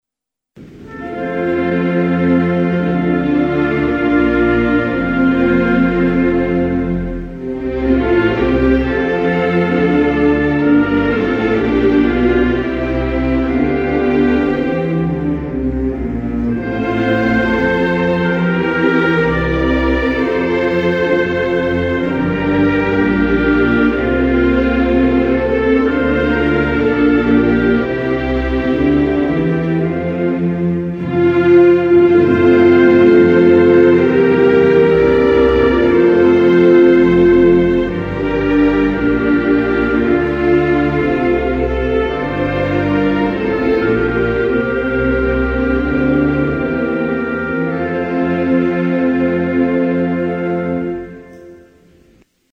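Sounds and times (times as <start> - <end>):
national anthem: 0.6 - 52.3.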